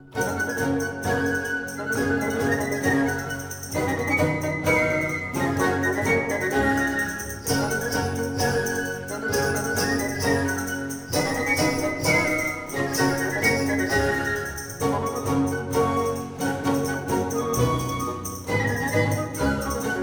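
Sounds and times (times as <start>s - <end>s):
baroque orchestra: 0.0s - 20.0s
tambourine: 0.2s - 20.0s.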